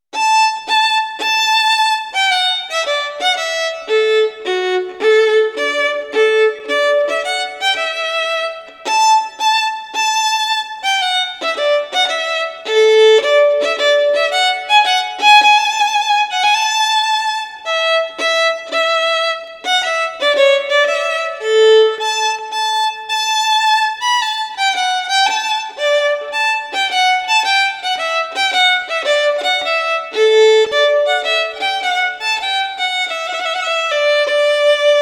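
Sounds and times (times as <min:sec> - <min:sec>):
violin: 0:00.1 - 0:35.0.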